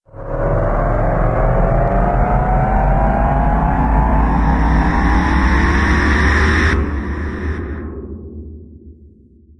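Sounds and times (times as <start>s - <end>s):
explosion: 1.2s - 8.0s.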